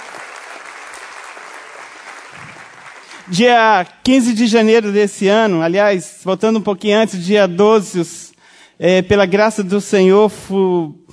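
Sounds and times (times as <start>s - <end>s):
audience clapping: 0.0s - 3.7s
speech: 3.3s - 11.0s.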